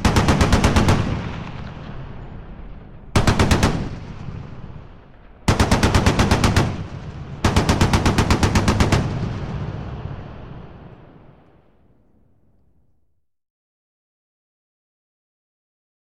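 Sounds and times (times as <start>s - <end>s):
machine gun firing: 0.0s - 10.3s.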